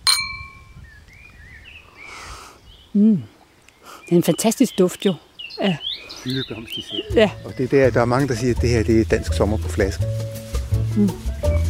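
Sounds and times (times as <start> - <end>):
wine glasses clinking: 0.0 - 0.8
speech: 3.0 - 3.3, 4.1 - 11.3.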